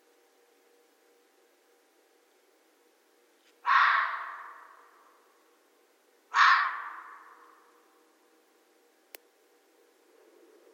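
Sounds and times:
red fox harsh raspy barks: 0:03.6 - 0:05.2, 0:06.3 - 0:07.7.

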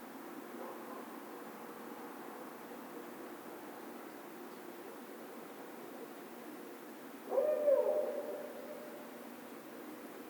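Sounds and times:
quiet background hiss: 0:00.0 - 0:10.2
barred owl hooting: 0:07.3 - 0:08.9.

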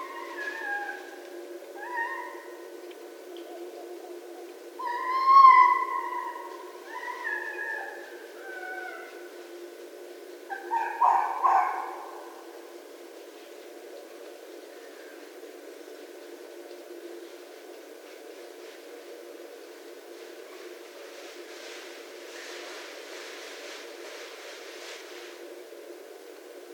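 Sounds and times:
red fox calling: 0:00.0 - 0:02.7, 0:03.4 - 0:09.2, 0:10.5 - 0:12.4.

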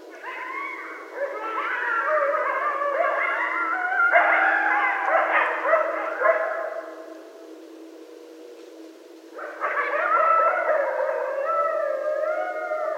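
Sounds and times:
Canis latrans coyotes at night: 0:00.0 - 0:12.9.

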